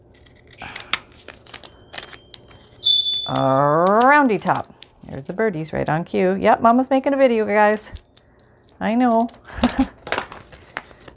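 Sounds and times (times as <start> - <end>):
paper crinkling and creasing as a sheet is folded for an envelope: 0.1 - 2.8, 9.2 - 11.1
speech: 3.3 - 8.1, 8.8 - 9.9.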